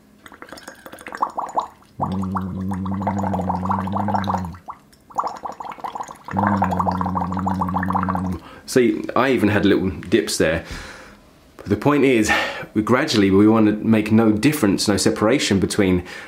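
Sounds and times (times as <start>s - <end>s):
bubbling through a straw into water: 0.0s - 8.4s
steady low voice hum: 2.0s - 4.6s, 6.3s - 8.4s
speech: 2.1s - 4.2s, 8.7s - 10.9s, 11.7s - 16.2s.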